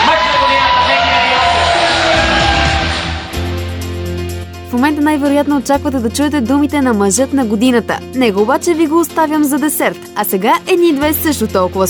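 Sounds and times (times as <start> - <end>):
crowd applauding: 0.0 - 3.6
speech: 4.8 - 11.8.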